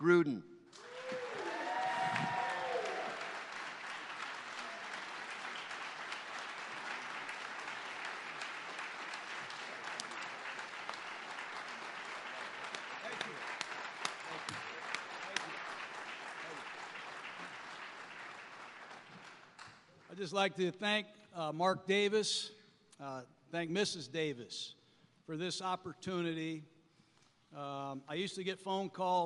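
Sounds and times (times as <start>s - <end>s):
speech: 0.0s - 0.8s, 20.2s - 26.7s, 27.5s - 29.2s
crowd applause greeting the Oakland Raiders head coach: 0.8s - 20.1s.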